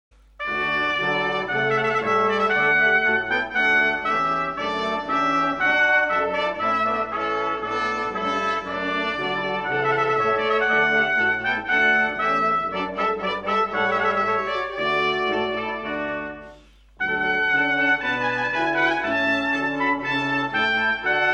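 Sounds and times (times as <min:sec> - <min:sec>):
trumpet piece: 0:00.2 - 0:21.3.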